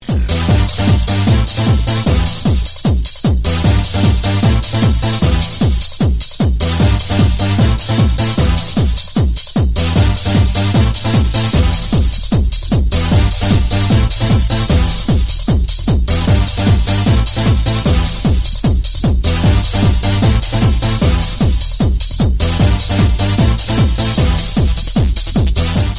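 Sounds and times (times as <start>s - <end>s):
techno music: 0.0s - 25.9s.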